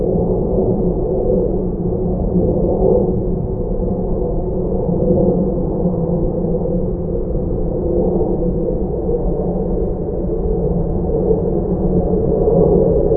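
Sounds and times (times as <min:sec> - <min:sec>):
airplane flying high: 0:00.0 - 0:13.1.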